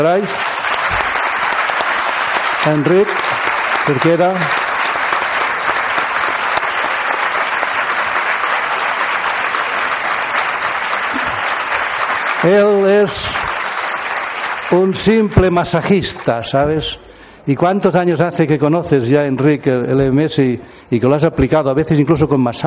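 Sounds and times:
speech: 0.0 - 0.5, 2.6 - 3.3, 3.9 - 4.6, 12.4 - 13.4, 14.7 - 22.6
audience applause: 0.0 - 17.0.

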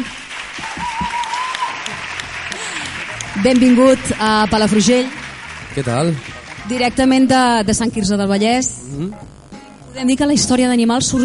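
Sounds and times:
audience applause: 0.0 - 7.6
speech: 3.4 - 5.2, 5.8 - 9.4, 10.0 - 11.2.

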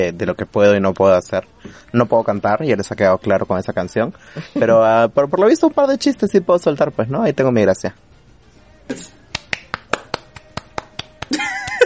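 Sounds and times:
speech: 0.0 - 8.1, 8.9 - 9.2
small round of applause: 9.3 - 11.8
laughter: 11.3 - 11.8.

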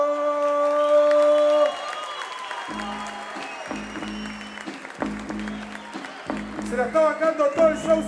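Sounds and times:
audience clapping and cheering: 0.0 - 8.0
steady electronic horn: 2.7 - 6.7
speech: 6.8 - 8.0.

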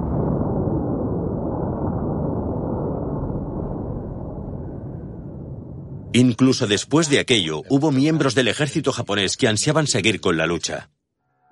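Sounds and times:
atomic bomb exploding over Nagasaki: 0.0 - 8.4
speech: 6.2 - 11.0.

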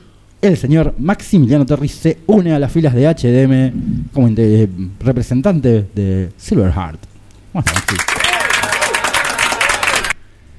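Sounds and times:
speech: 0.4 - 8.1
audience applause: 7.7 - 10.2
voices cheering: 7.7 - 10.2.

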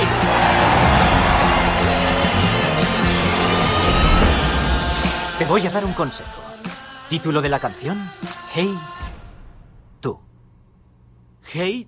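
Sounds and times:
audience applause: 0.0 - 5.3
speech: 5.4 - 6.5, 7.1 - 9.0, 10.0 - 10.2, 11.4 - 11.8.

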